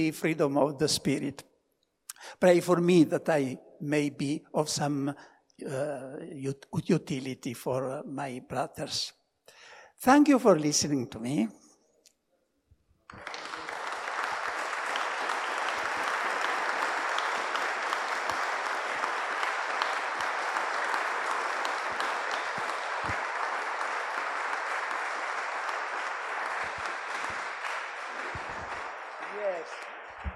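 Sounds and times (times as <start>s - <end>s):
speech: 0.0s - 1.5s, 2.2s - 9.2s, 10.0s - 11.6s, 13.1s - 13.4s
audience clapping: 13.1s - 30.3s.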